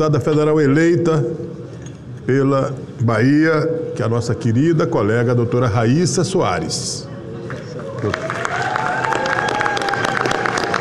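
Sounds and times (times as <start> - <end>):
speech: 0.0 - 1.6, 2.3 - 8.5
crowd of supporters cheering and applauding: 7.5 - 10.7.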